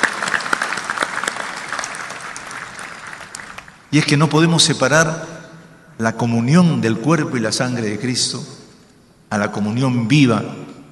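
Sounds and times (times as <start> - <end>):
audience applause: 0.0 - 3.9
speech: 3.9 - 5.4, 6.0 - 8.6, 9.3 - 10.6.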